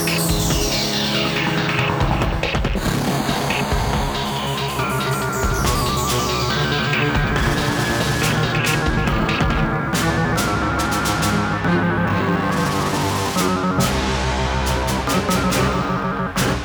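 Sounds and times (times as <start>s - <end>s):
music: 0.0s - 16.6s.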